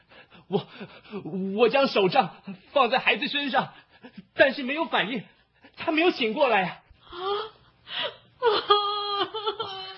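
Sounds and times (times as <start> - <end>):
speech: 0.5 - 7.4
person crying: 7.1 - 9.9.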